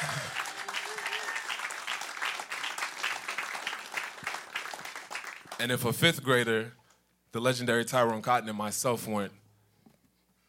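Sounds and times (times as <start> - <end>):
audience clapping: 0.0 - 6.0
speech: 5.6 - 9.4.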